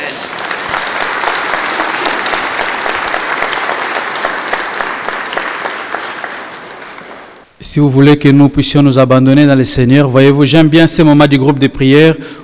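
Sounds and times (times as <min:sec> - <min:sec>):
audience applauding: 0:00.0 - 0:07.5
speech: 0:07.6 - 0:12.4.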